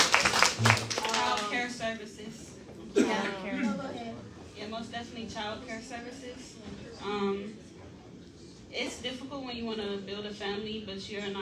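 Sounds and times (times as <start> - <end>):
round of applause: 0.0 - 1.7
speech: 1.9 - 7.6, 8.7 - 11.4.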